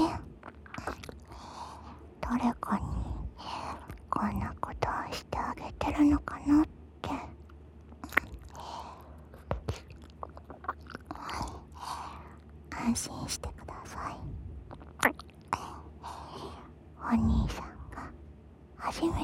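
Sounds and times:
person whispering: 0.0 - 1.0, 2.2 - 7.4, 12.7 - 14.4, 15.5 - 18.2, 18.8 - 19.2
ear licking: 0.3 - 1.4, 9.3 - 11.7.

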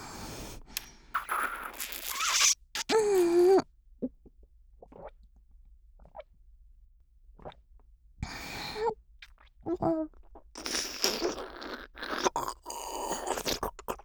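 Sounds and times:
stroking oral sex sounds: 0.5 - 3.6, 10.6 - 14.0.

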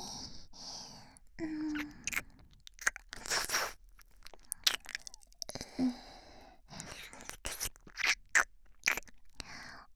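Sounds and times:
ear licking: 1.5 - 6.1, 6.6 - 9.3.

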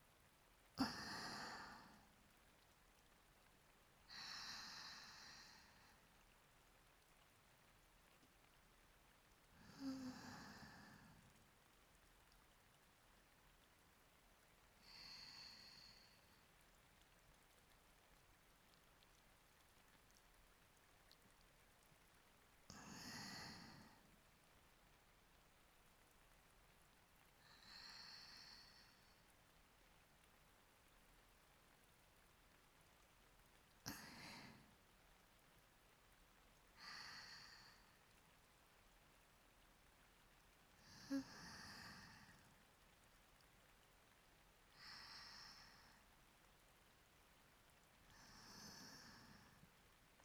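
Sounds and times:
rain: 0.0 - 50.2
breathing: 4.1 - 6.1, 14.8 - 16.4, 27.4 - 29.3, 33.8 - 34.7, 36.8 - 38.1, 40.8 - 42.6, 44.7 - 46.1, 48.1 - 49.7.

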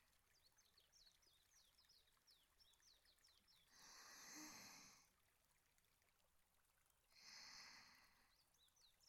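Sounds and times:
breathing during a daytime nap: 3.7 - 5.1, 7.1 - 8.3.

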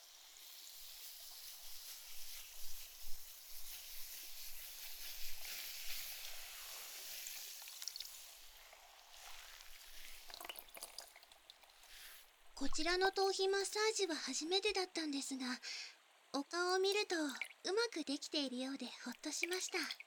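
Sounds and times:
carbonated foam bubbles fizzing: 0.0 - 13.8, 18.8 - 20.0
speech: 12.6 - 20.0.

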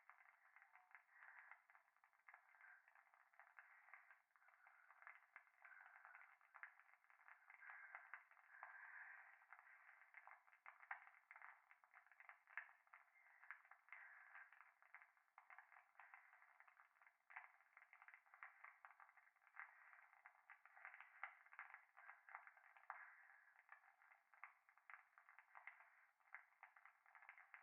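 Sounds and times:
fireplace crackling: 0.0 - 27.6
breathing close to the right ear in a bath: 1.1 - 1.7, 3.6 - 10.4.

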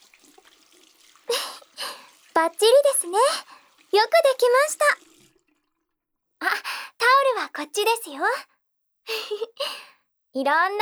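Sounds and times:
water running while rinsing hands after washing: 0.0 - 6.0
speech: 2.4 - 5.0, 7.4 - 8.5, 9.1 - 10.8.

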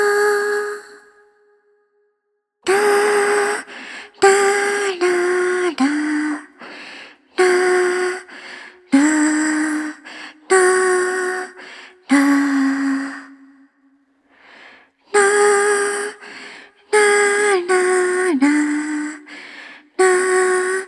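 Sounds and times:
lullaby with reverb: 2.7 - 13.6, 15.1 - 20.8.

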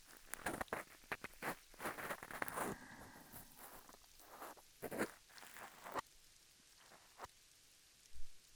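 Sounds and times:
ear cleaning in right ear: 0.0 - 6.0.

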